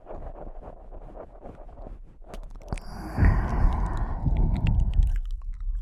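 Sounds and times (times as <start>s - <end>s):
eating sounds: 2.7s - 5.2s
heavy low rumbling: 2.8s - 5.3s.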